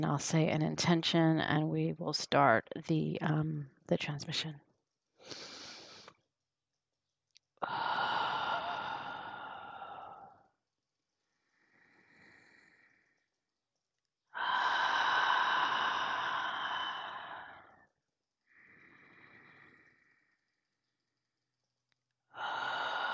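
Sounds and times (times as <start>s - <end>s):
speech: 0.0s - 4.6s
slow deep breaths during a guided meditation: 5.2s - 6.2s, 7.6s - 10.6s, 11.2s - 13.6s, 14.3s - 21.2s, 22.3s - 23.1s.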